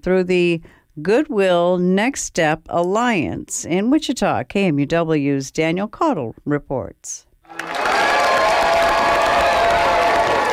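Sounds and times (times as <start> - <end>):
speech: 0.0 - 7.8
friends and family applauding at a GED graduation ceremony: 7.5 - 10.5.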